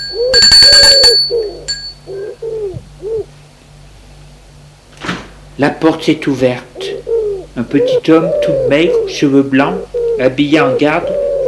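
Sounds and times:
doorbell ringing: 0:00.0 - 0:02.1
speech: 0:05.6 - 0:06.7, 0:07.6 - 0:11.4.

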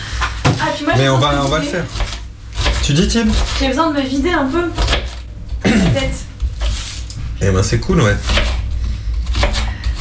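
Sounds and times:
knife chopping onions: 0:00.4 - 0:03.9, 0:04.7 - 0:05.2, 0:08.0 - 0:10.0
speech: 0:00.7 - 0:02.1, 0:02.9 - 0:05.1, 0:05.8 - 0:06.3, 0:07.4 - 0:08.4.

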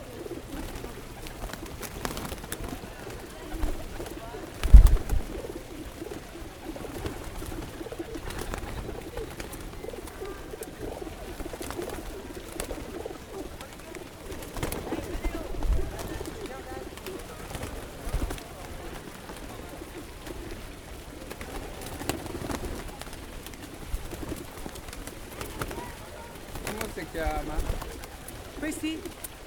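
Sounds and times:
faint voices: 0:00.0 - 0:29.4
pigeon wing flaps: 0:00.0 - 0:29.4
pigeons cooing in front of the Palais Farnese in Rome: 0:00.0 - 0:29.4
sharp thump: 0:04.8 - 0:05.2.

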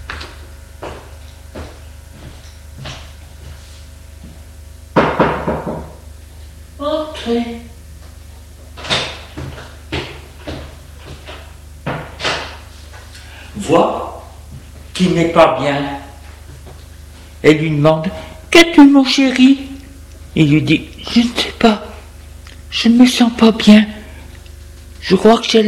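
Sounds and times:
knocking on a bedroom door: 0:05.0 - 0:06.0
speech: 0:07.2 - 0:07.6, 0:15.2 - 0:16.0, 0:17.4 - 0:19.7, 0:20.4 - 0:21.9, 0:22.7 - 0:24.0, 0:25.1 - 0:25.6.

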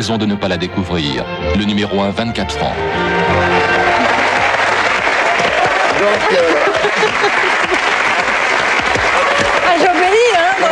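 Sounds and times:
speech: 0:00.0 - 0:04.0, 0:06.0 - 0:08.0
crowd applauding: 0:02.9 - 0:10.7
scattered chuckles and voices: 0:06.0 - 0:08.0.

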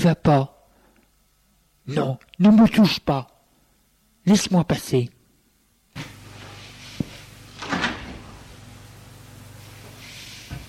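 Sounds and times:
speech: 0:00.0 - 0:00.5, 0:01.9 - 0:03.3, 0:04.2 - 0:05.2
bedroom door opening: 0:06.0 - 0:08.6.

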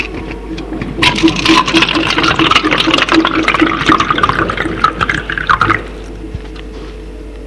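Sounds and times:
glass on a bedside table being filled: 0:01.0 - 0:06.0.

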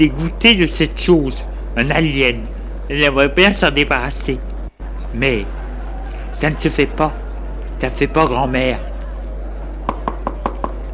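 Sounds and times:
speech: 0:00.0 - 0:04.5, 0:05.1 - 0:05.6, 0:06.4 - 0:07.2, 0:07.8 - 0:08.9
laughter: 0:04.8 - 0:07.8
knocking on a door: 0:09.9 - 0:10.8.

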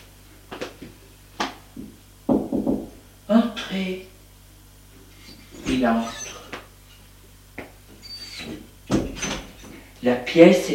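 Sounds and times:
knocking on a door: 0:01.8 - 0:03.0
speech: 0:03.7 - 0:04.2, 0:05.7 - 0:06.2, 0:10.0 - 0:10.7.

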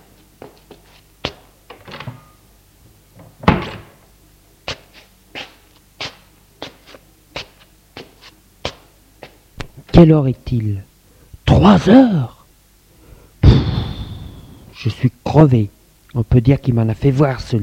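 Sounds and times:
apartment door opening: 0:03.2 - 0:04.0
speech: 0:10.0 - 0:10.9, 0:11.5 - 0:12.4, 0:14.8 - 0:17.6
heavy thump: 0:13.4 - 0:14.7.

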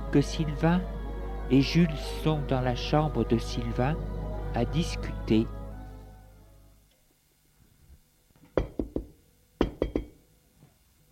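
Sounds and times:
speech: 0:00.1 - 0:05.6
knocking on a door: 0:08.6 - 0:10.2.

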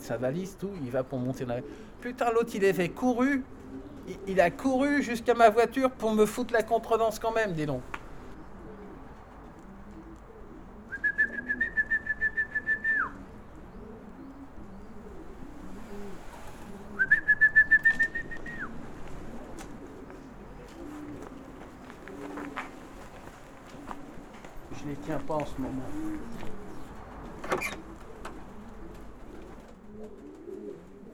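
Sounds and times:
pigeons cooing: 0:00.0 - 0:31.1
speech: 0:00.1 - 0:08.0, 0:25.4 - 0:26.3
rapidly pulsing whistle-like tone: 0:10.9 - 0:13.1.

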